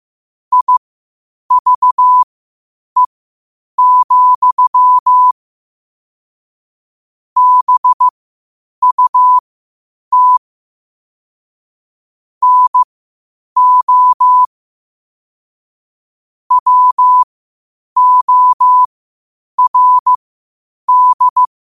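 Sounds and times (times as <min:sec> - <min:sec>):
morse code at 5 wpm: 0:00.5 - 0:00.8, 0:01.5 - 0:02.3, 0:03.8 - 0:05.4, 0:07.4 - 0:08.1, 0:08.8 - 0:09.4, 0:10.1 - 0:10.4, 0:12.4 - 0:12.9, 0:13.6 - 0:14.5, 0:16.5 - 0:17.3, 0:18.0 - 0:18.9, 0:19.6 - 0:20.2, 0:20.9 - 0:21.5.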